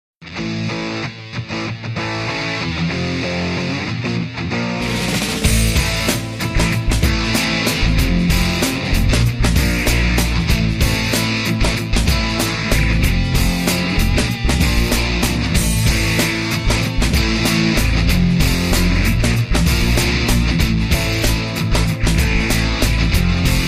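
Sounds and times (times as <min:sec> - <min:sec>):
heavy guitar licks: 0:00.2 - 0:23.6.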